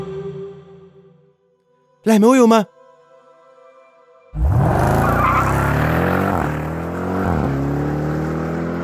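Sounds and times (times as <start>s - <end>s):
speech: 2.0s - 2.8s
Grand Cherokee SUV engine roaring: 4.4s - 8.8s.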